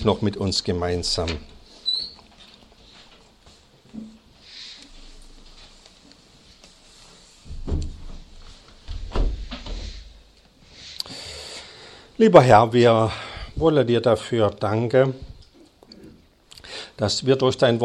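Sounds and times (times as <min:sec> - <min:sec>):
speech: 0:00.0 - 0:01.5, 0:12.2 - 0:15.3, 0:17.0 - 0:17.8
windows being closed: 0:07.5 - 0:10.2.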